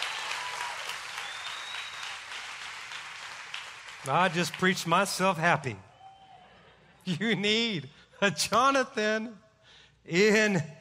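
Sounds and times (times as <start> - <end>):
audience hand clapping applause: 0.0 - 5.8
speech: 4.0 - 5.9, 7.1 - 9.4, 10.0 - 10.7.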